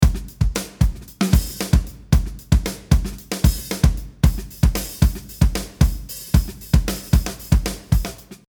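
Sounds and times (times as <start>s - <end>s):
modern drummer drums playing: 0.0s - 8.4s.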